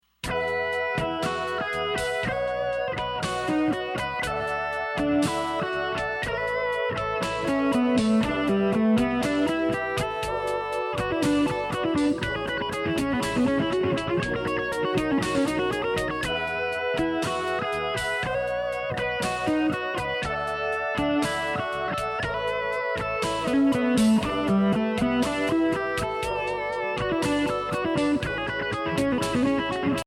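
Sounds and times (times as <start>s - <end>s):
major seventh jazz guitar chords: 0.2s - 30.0s.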